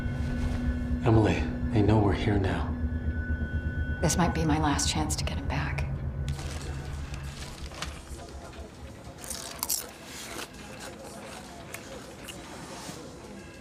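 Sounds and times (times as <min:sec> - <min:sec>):
low hum: 0:00.0 - 0:13.5
speech: 0:01.0 - 0:02.7, 0:04.0 - 0:05.7
person munching crunchy snacks: 0:07.2 - 0:12.8.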